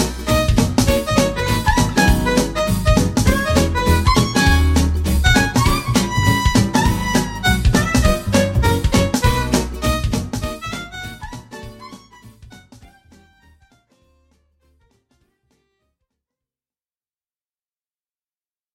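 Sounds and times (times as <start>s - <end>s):
bluegrass fiddle: 0.0s - 14.7s.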